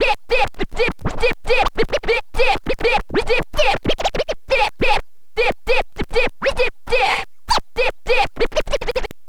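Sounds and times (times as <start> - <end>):
vinyl scratches mix: 0.0 - 9.1.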